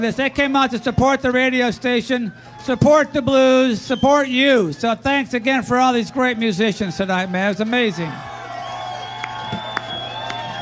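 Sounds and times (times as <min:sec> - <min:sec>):
speech: 0:00.0 - 0:08.3
live crowd cheering with whoops and whistles: 0:00.0 - 0:10.6
claps and shouts: 0:08.8 - 0:10.6.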